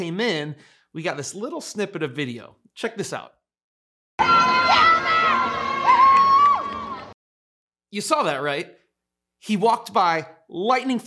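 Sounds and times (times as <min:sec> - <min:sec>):
speech: 0:00.0 - 0:03.4, 0:04.2 - 0:05.6, 0:07.9 - 0:08.8, 0:09.4 - 0:11.0
crowd screaming and yelling at an arrival: 0:04.2 - 0:07.2.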